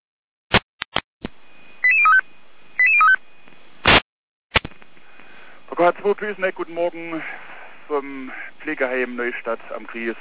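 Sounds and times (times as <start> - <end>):
sharp static clicks and noise bursts: 0.5 - 2.2, 3.1 - 5.0
radio alerting tone sequence: 1.8 - 2.2, 2.8 - 3.2
speech: 5.8 - 10.1.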